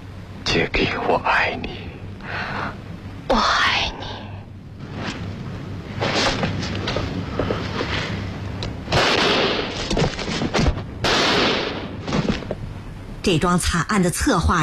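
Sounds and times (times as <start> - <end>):
wind-like noise: 0.0 - 14.6
speech: 0.5 - 3.6, 13.2 - 14.6
gunshots in a drama scene: 8.9 - 10.0, 11.0 - 12.3.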